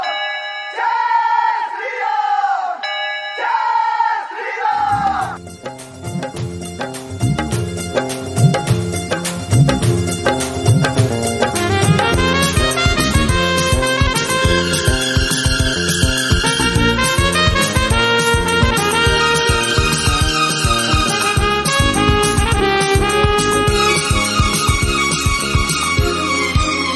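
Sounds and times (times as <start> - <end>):
ringing bells: 0.0 - 1.4, 4.8 - 26.9
voices chanting the slogan Jai Shri Ram: 0.8 - 5.4
percussion: 4.8 - 26.9
devotional music: 5.0 - 26.9.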